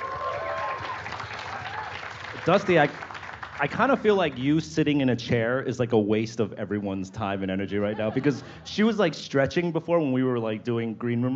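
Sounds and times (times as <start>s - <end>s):
audience applause: 0.0s - 4.6s
speech: 2.4s - 11.3s
laughter: 7.3s - 9.4s.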